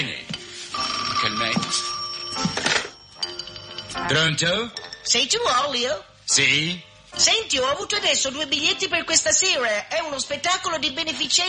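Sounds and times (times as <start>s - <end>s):
telephone ringing: 0.7s - 5.3s
speech: 1.4s - 2.0s, 4.1s - 11.4s.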